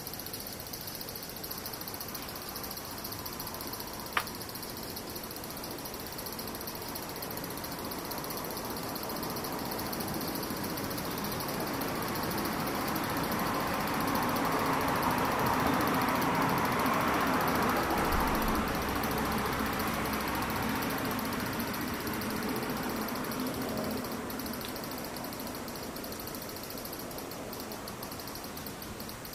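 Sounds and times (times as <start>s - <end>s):
cicadas buzzing: 0.0s - 29.3s
vehicle passing: 11.3s - 24.6s.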